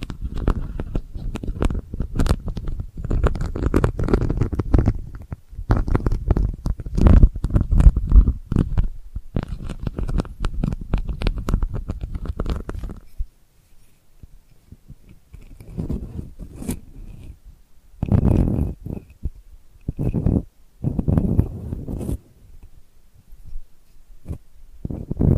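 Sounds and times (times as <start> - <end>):
delicate scratching: 0.0 - 17.4, 18.0 - 25.3.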